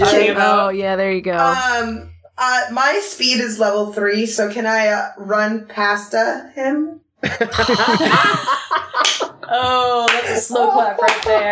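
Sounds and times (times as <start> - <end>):
speech: 0.0 - 11.5
laughter: 7.2 - 11.5
slow clap: 7.6 - 9.3.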